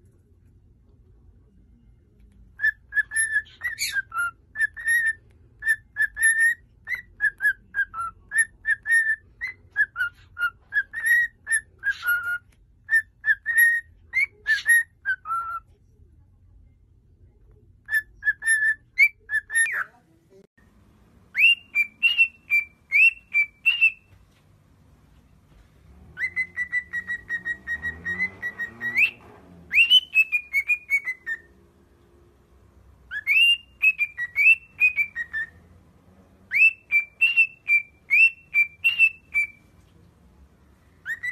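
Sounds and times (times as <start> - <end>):
cockatiel whistled song: 2.6 - 15.6, 17.8 - 19.9, 21.3 - 24.2, 26.1 - 31.7, 33.0 - 35.7, 36.4 - 39.8, 41.0 - 41.2.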